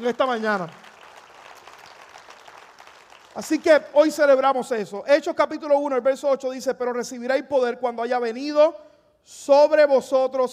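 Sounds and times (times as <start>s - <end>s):
speech: 0.0s - 0.8s, 3.4s - 10.5s
audience applauding: 0.0s - 3.8s.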